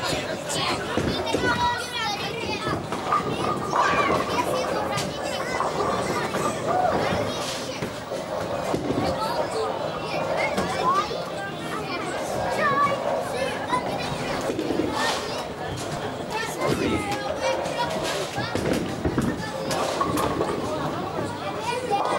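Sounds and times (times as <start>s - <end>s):
very busy crowd in a bowling hall: 0.0s - 22.1s.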